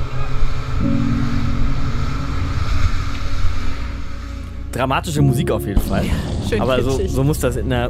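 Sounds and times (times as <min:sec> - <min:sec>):
motorboat engine: 0:00.0 - 0:04.7
speech: 0:04.8 - 0:07.8.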